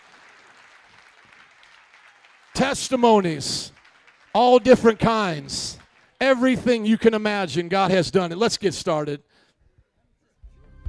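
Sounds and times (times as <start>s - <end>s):
audience hand clapping: 0.0s - 7.7s
speech: 2.6s - 3.8s, 4.4s - 9.3s.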